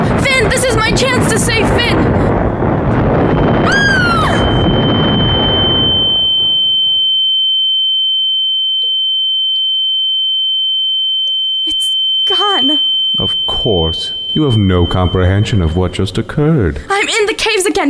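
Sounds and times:
bombs exploding: 0.0s - 6.6s, 13.2s - 16.8s
speech: 0.4s - 2.3s, 14.3s - 17.2s
downward whistling tones: 3.2s - 9.0s, 10.1s - 16.8s
steady high ringing tone: 3.4s - 17.4s.

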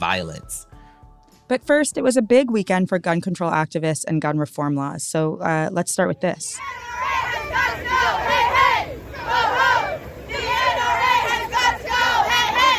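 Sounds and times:
speech: 0.0s - 0.7s, 1.5s - 8.2s
demonstrators chanting in unison at a March for Our Lives rally: 6.6s - 12.7s.

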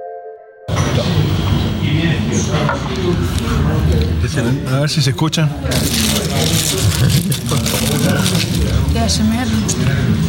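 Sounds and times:
voices murmuring: 0.7s - 10.2s
speech: 2.4s - 10.2s
people chewing crunchy potato chips: 5.6s - 9.2s.

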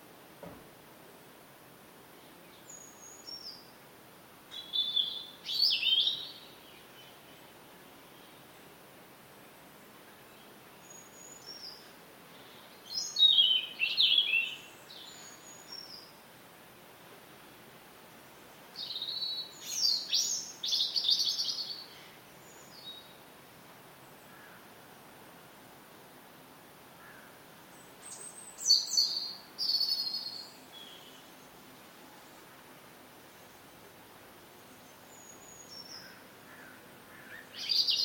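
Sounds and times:
Sunday morning birdsong: 4.5s - 8.5s, 10.1s - 16.2s, 18.3s - 23.2s, 27.0s - 32.6s, 34.6s - 38.0s.

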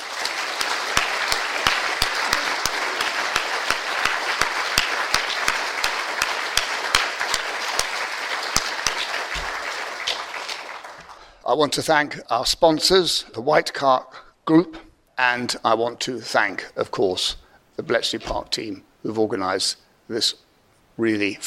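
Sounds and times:
room full of people applauding: 0.0s - 11.3s
speech: 11.5s - 20.4s, 21.0s - 21.4s.

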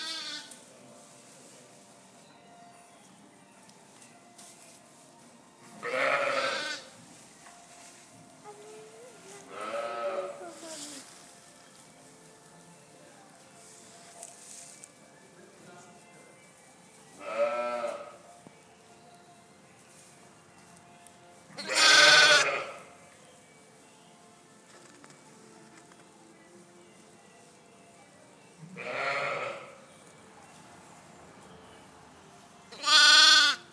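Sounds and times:
lambing shed noise: 0.0s - 2.2s, 2.8s - 15.1s, 15.8s - 23.1s, 28.4s - 33.7s.

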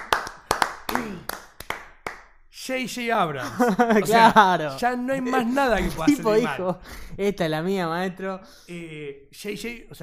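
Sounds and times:
small group clapping: 0.0s - 2.4s
speech: 2.7s - 10.0s
laughter: 3.4s - 6.6s.

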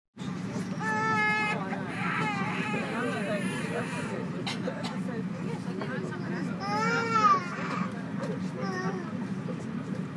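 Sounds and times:
flight cabin noise: 0.2s - 10.1s.

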